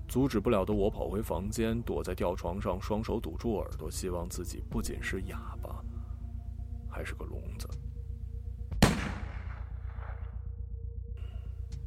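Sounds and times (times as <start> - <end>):
speech: 0.1 - 5.9, 6.9 - 7.8
steady low droning hum: 0.9 - 11.8
single loud echoing gunshot: 8.8 - 10.4.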